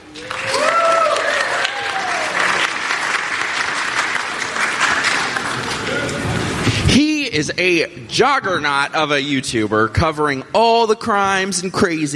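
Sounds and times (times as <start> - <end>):
crowd applause at a debate event welcoming a guest: 0.0 - 6.7
speech: 7.4 - 12.1.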